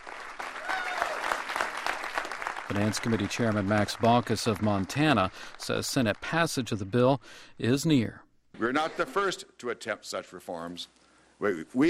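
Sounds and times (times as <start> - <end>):
applause and cheering for Senate Democrats at a press conference on Capitol Hill: 0.0 - 7.1
speech: 2.7 - 11.8.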